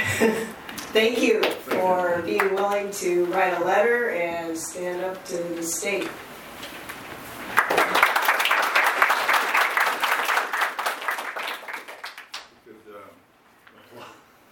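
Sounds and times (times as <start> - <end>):
speech: 0.2 - 6.3
audience applause: 7.4 - 12.5.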